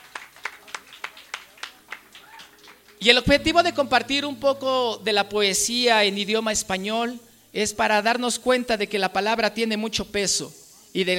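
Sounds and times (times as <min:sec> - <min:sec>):
audience clapping in unison: 0:00.0 - 0:03.1
speech: 0:03.0 - 0:11.1.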